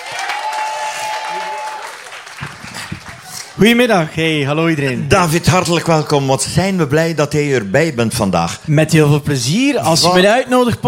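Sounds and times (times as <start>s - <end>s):
audience applause: 0.0s - 4.0s
speech: 3.6s - 10.8s.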